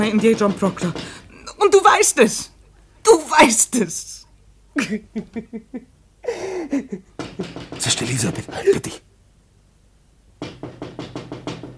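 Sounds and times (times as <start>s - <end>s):
knocking on a window: 0.0s - 1.2s, 7.1s - 9.0s, 10.4s - 11.7s
speech: 0.0s - 4.2s, 4.8s - 9.1s.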